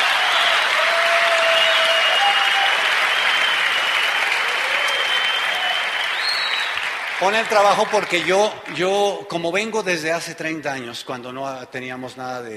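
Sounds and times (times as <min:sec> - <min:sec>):
faint tonal whistles or cheers: 0:00.0 - 0:07.1
audience applause: 0:00.0 - 0:09.0
speech: 0:07.2 - 0:12.5.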